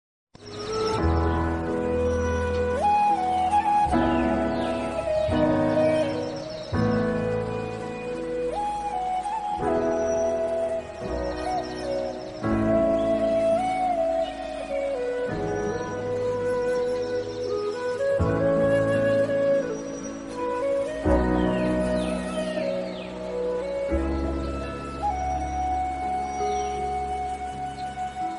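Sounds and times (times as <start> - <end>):
flute instrumental: 0.4 - 28.3.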